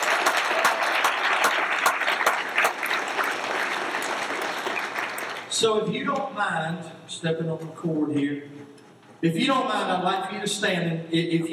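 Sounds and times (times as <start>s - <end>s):
audience applause: 0.0s - 5.5s
speech: 5.6s - 8.6s, 9.2s - 11.5s.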